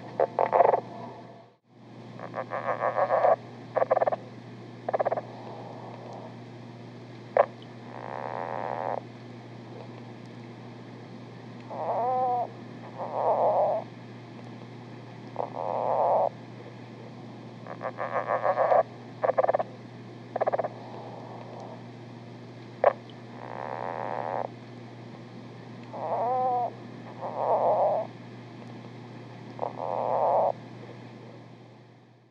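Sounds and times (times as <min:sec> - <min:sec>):
lowland leopard frog calling: 0:00.0 - 0:01.0, 0:02.2 - 0:06.4, 0:07.4 - 0:09.0, 0:11.6 - 0:13.9, 0:15.4 - 0:21.8, 0:22.8 - 0:24.5, 0:25.9 - 0:28.1, 0:29.6 - 0:31.4
low hum: 0:00.0 - 0:32.2
speech: 0:02.4 - 0:03.0.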